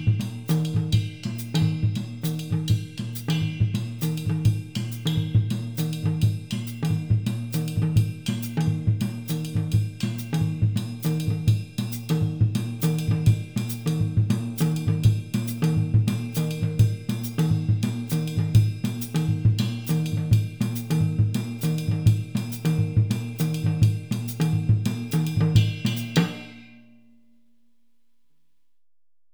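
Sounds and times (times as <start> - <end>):
drum kit playing a West African adowa rhythm: 0.0 - 26.8.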